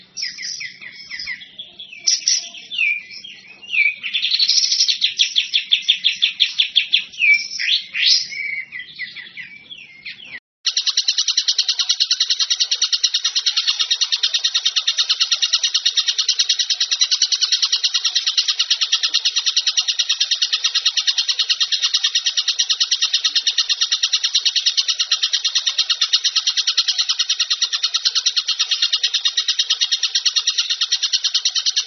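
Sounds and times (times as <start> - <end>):
bird buzzy chatter: 0.0 - 31.8.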